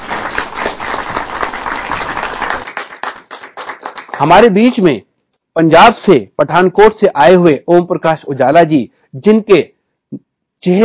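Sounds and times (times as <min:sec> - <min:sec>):
audience applause welcoming a guest: 0:00.0 - 0:04.3
speech: 0:04.2 - 0:10.8.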